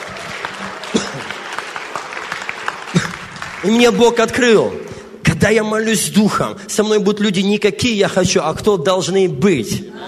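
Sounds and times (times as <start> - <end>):
audience applause: 0.0 - 5.0
speech: 3.6 - 4.8, 5.4 - 10.0.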